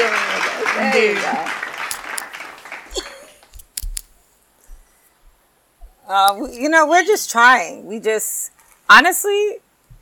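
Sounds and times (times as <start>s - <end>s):
applause: 0.0s - 3.5s
speech: 6.1s - 9.7s.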